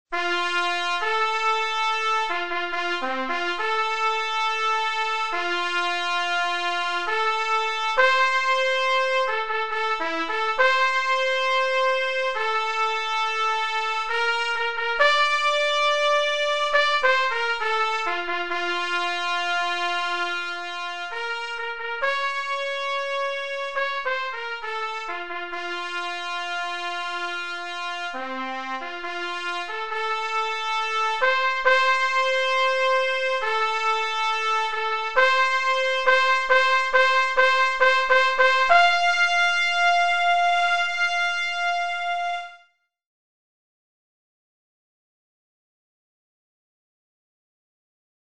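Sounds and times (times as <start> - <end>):
trumpet call: 0.1 - 42.7.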